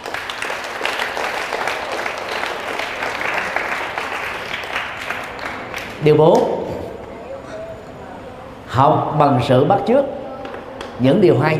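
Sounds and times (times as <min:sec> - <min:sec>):
children applauding loudly: 0:00.0 - 0:06.0
speech: 0:06.0 - 0:06.6, 0:08.8 - 0:10.2, 0:11.0 - 0:11.5.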